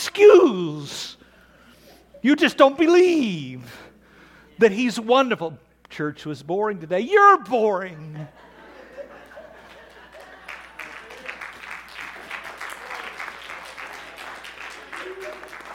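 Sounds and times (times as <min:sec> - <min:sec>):
speech: 0:02.2 - 0:03.8, 0:04.6 - 0:08.5
laughter: 0:08.0 - 0:11.5, 0:14.7 - 0:15.7
audience applause: 0:09.2 - 0:15.7.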